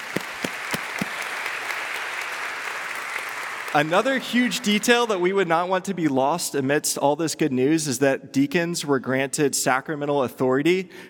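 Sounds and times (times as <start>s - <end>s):
audience clapping in celebration: 0.0s - 5.3s
speech: 3.7s - 11.0s.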